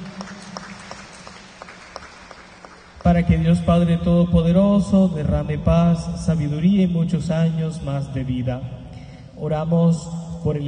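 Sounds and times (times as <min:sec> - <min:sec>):
church congregation clapping in rhythm for a member's birthday: 0:00.0 - 0:03.8
speech: 0:03.0 - 0:08.8, 0:09.4 - 0:10.6.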